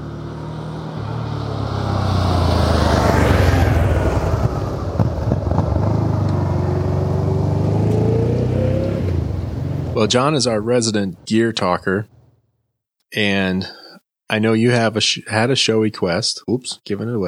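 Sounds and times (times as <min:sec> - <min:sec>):
car engine sound effect for a U-turn: 0:00.0 - 0:12.4
speech: 0:10.0 - 0:12.2, 0:13.1 - 0:17.2.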